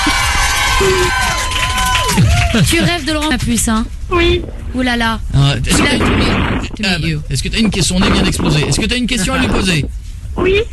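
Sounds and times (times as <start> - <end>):
live audience cheering: 0.0 - 2.9
speech: 0.8 - 1.2, 2.2 - 10.7.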